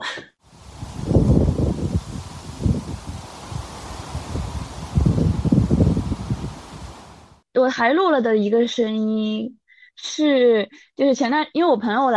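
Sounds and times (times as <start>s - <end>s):
tree leaves rustling in the wind: 0.4s - 7.4s
speech: 7.6s - 12.1s.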